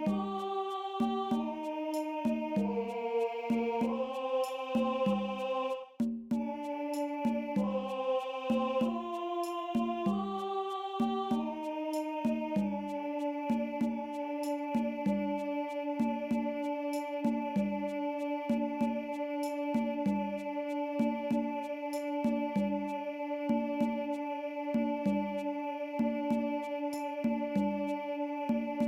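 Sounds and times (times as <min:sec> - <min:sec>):
alto choir singing: 0:00.0 - 0:28.8.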